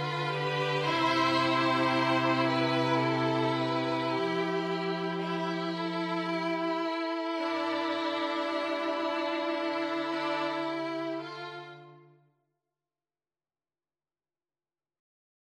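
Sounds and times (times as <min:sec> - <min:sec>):
string trio playing a classical adagio: 0:00.0 - 0:12.1.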